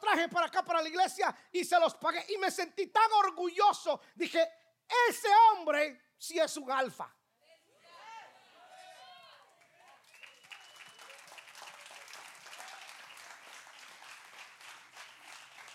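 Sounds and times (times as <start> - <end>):
speech: 0.2 - 7.2
quiet applause from men: 8.6 - 15.7.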